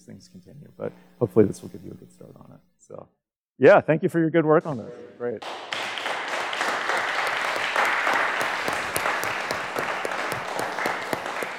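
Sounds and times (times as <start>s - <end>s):
speech: 0.1s - 5.9s
crowd applause: 5.4s - 11.5s.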